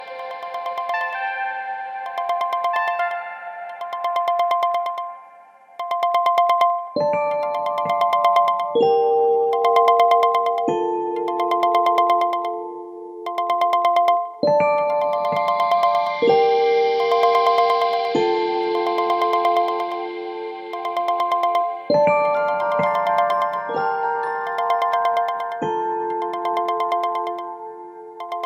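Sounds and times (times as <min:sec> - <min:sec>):
original phone ringtone: 0:00.0 - 0:28.4.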